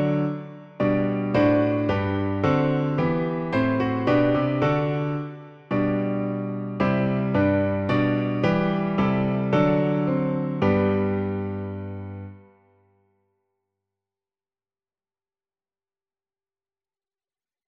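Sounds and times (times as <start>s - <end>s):
piano piece: 0.0s - 12.8s.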